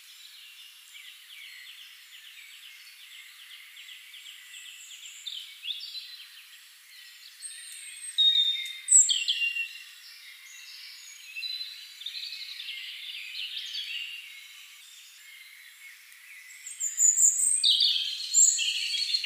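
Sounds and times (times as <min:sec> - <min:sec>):
European robin Erithacus rubecula singing: 0:00.0 - 0:19.2.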